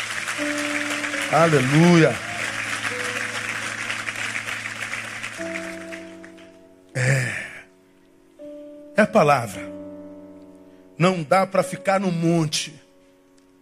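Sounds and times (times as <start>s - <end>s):
audience applause: 0.0s - 6.6s
speech: 1.3s - 2.3s, 9.0s - 9.7s, 11.0s - 12.8s.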